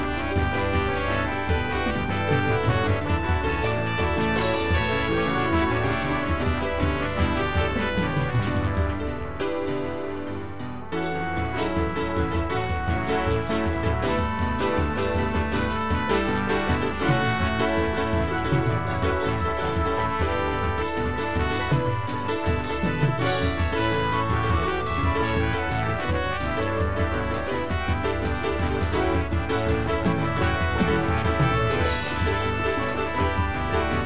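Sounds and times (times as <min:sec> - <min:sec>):
percussion: 0:00.0 - 0:34.0.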